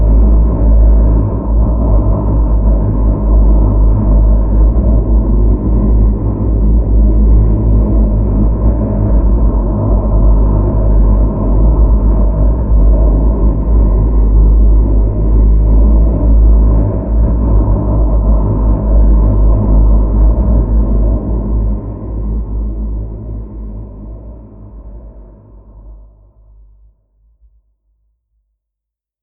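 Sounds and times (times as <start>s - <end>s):
low stealth drone: 0.0s - 26.3s.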